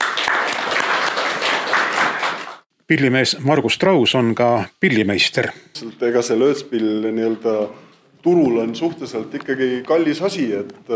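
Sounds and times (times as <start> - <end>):
audience applause at a society gathering honouring a member: 0.0 - 2.6
speech: 2.9 - 10.9.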